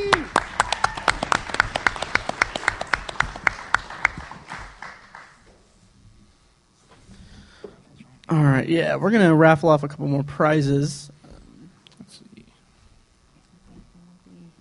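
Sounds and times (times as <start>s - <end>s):
audience applause: 0.0s - 5.4s
speech: 8.3s - 11.2s.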